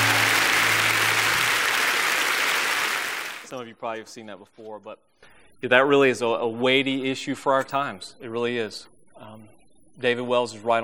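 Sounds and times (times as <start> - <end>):
audience applause: 0.0 - 3.5
speech: 3.5 - 10.8.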